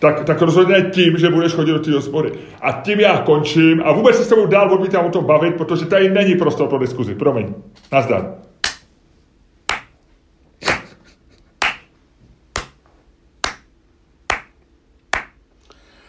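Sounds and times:
speech: 0.0 - 8.4
slow sparse clapping: 8.6 - 8.9, 9.7 - 10.0, 10.6 - 15.4.

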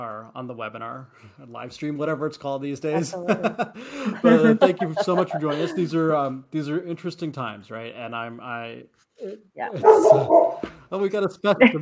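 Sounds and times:
speech: 0.0 - 11.7
laughter: 3.0 - 7.0, 9.7 - 10.3, 11.0 - 11.7
dog barking: 9.8 - 10.6.

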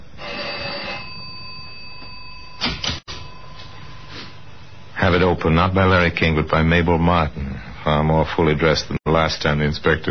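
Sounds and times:
apartment doorbell ringing: 0.2 - 4.0
speech: 5.1 - 10.0.

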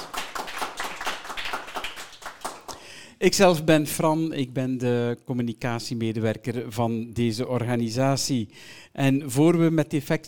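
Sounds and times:
audience applause: 0.0 - 2.8
speech: 3.2 - 10.2.

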